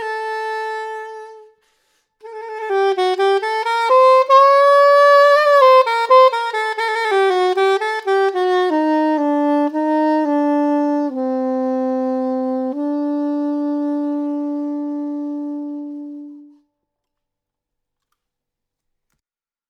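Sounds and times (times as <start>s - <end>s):
soprano saxophone: 0.0s - 16.7s.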